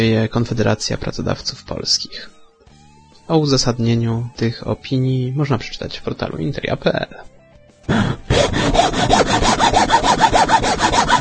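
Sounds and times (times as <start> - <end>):
speech: 0.0 - 2.4, 3.3 - 7.3
sawing or filing: 7.9 - 11.2.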